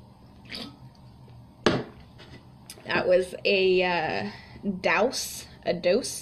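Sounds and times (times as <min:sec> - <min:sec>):
person sipping an energy drink: 0:00.4 - 0:00.9
wet gulp of an energy drink: 0:00.4 - 0:00.9
speech: 0:02.9 - 0:06.2.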